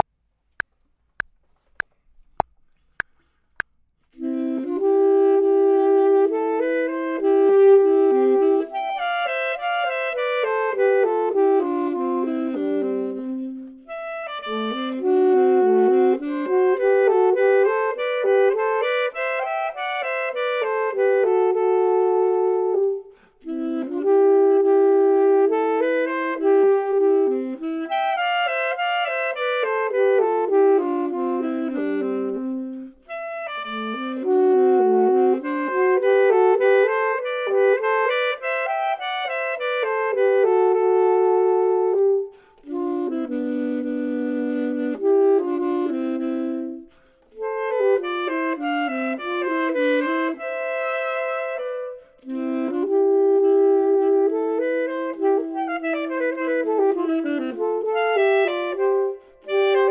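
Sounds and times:
clarinet: 0:04.0 - 0:59.9
saxophone: 0:04.0 - 0:59.9.

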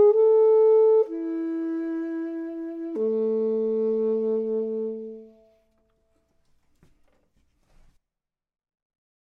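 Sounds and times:
saxophone: 0:00.0 - 0:05.9
clarinet: 0:00.0 - 0:06.1.

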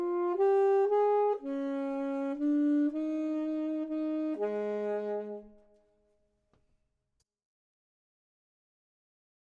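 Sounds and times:
clarinet: 0:00.0 - 0:05.9
saxophone: 0:00.0 - 0:05.9.

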